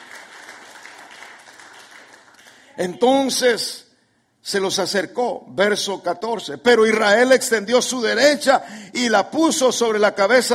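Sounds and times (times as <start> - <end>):
audience applause: 0.0 - 2.7
speech: 2.8 - 3.8, 4.4 - 10.5.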